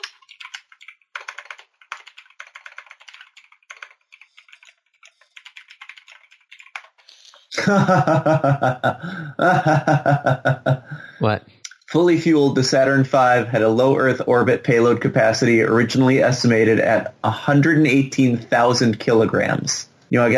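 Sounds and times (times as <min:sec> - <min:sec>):
typing on a computer keyboard: 0:00.0 - 0:07.2
laughter: 0:07.5 - 0:11.3
speech: 0:07.6 - 0:20.3.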